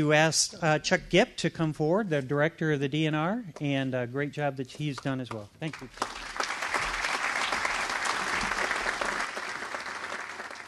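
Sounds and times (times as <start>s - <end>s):
speech: 0.0s - 6.4s
audience applause: 5.7s - 10.6s.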